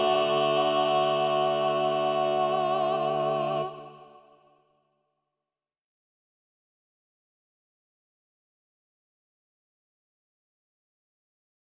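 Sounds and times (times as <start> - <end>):
SATB choir singing with soprano part muted: 0.0 - 4.5.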